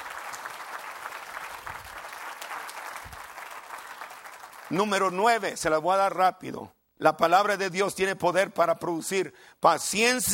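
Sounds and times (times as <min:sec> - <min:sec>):
audience applause: 0:00.0 - 0:05.1
speech: 0:04.7 - 0:10.3.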